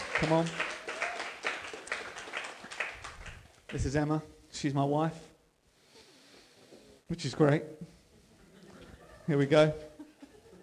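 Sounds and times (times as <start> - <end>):
audience applause: 0.0 - 3.5
speech: 0.2 - 0.7, 3.7 - 5.3, 7.1 - 8.0, 9.3 - 9.9
laughter: 8.2 - 10.6.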